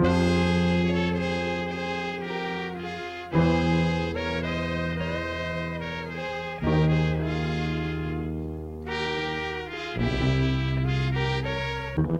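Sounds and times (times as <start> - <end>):
sad horns: 0.0 - 12.1.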